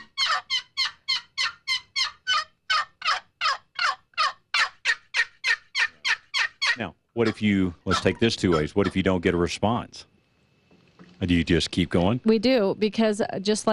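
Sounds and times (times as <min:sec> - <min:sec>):
box call making raspy turkey yelps: 0:00.0 - 0:09.2
speech: 0:06.8 - 0:10.1, 0:11.2 - 0:13.7.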